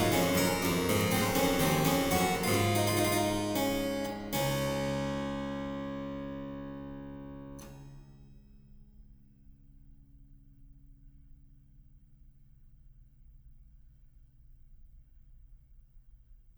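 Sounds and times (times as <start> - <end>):
harpsichord invention: 0.0 - 7.7.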